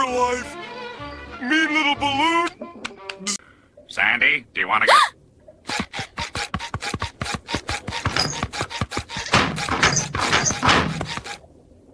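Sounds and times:
speech: 0.0 - 0.6, 1.4 - 3.4, 4.0 - 5.2
scratching an itchy spot: 5.7 - 11.4.

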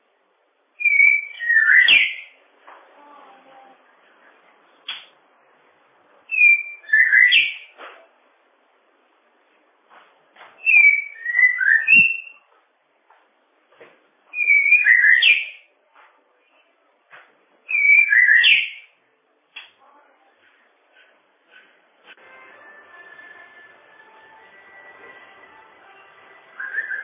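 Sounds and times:
bird song: 0.8 - 2.4, 6.3 - 7.8, 10.6 - 12.4, 14.3 - 15.7, 17.7 - 19.0, 26.5 - 27.0.

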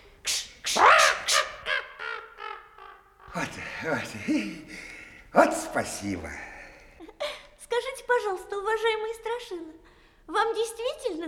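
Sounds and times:
crow cawing while chased away: 0.7 - 3.4
speech: 3.4 - 6.5, 8.8 - 11.2.

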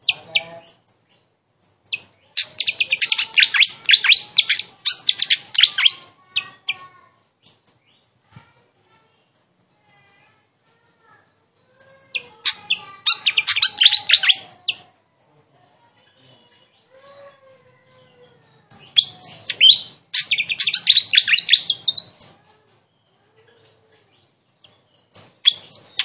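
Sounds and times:
flycatcher giving sharp high notes: 1.9 - 6.9, 11.6 - 14.9, 16.4 - 22.4, 24.6 - 26.0.

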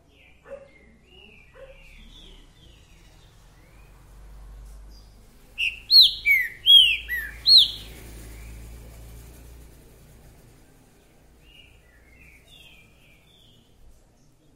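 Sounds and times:
Green-winged saltator singing: 5.6 - 8.0.

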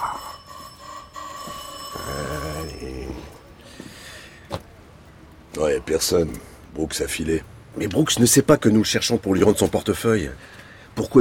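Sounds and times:
doorbell ringing: 0.0 - 3.6
speech: 5.6 - 11.1.

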